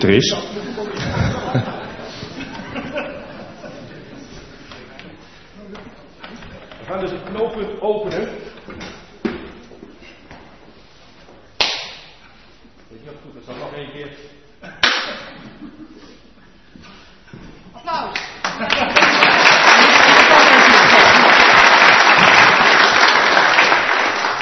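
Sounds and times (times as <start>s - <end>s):
laughter: 0.5s - 4.9s, 14.6s - 16.5s, 18.4s - 22.8s
audience clapping: 11.6s - 12.0s, 18.1s - 24.4s.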